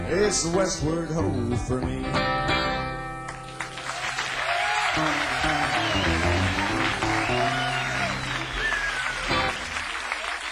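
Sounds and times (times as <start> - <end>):
speech: 0.1 - 2.5
audience applause: 3.4 - 10.4.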